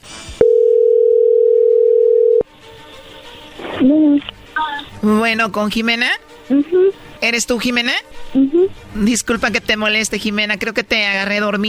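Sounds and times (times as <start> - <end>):
telephone dial tone while call connects: 0.4 - 2.4
speech: 3.8 - 4.3, 5.0 - 11.6.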